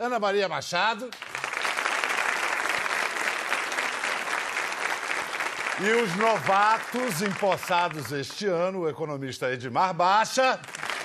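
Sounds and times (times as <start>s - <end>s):
speech: 0.0s - 1.4s, 5.8s - 10.8s
audience applause: 1.2s - 8.4s, 10.6s - 11.0s.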